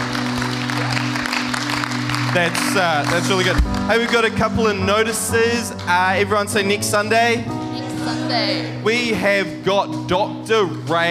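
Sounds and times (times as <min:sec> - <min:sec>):
crowd clapping: 0:00.0 - 0:06.6
speech: 0:02.3 - 0:11.1.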